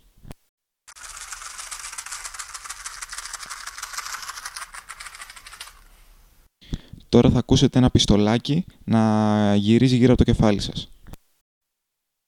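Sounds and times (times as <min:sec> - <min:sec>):
matchbox rattling, holophonic binaural recording: 0:00.9 - 0:05.9
speech: 0:07.1 - 0:11.0.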